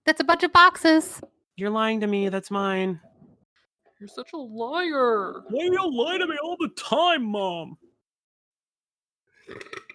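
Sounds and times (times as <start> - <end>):
speech: 0.1 - 3.1, 4.0 - 7.9, 9.5 - 9.8
throaty burp: 9.4 - 9.9.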